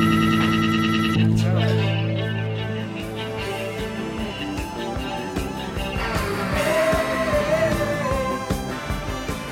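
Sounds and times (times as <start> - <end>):
rock song played on a radio show: 0.0 - 9.5
steady driving drumbeat: 3.0 - 9.5.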